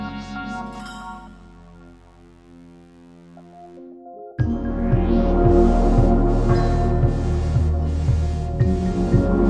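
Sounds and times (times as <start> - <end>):
beat: 4.4 - 9.4.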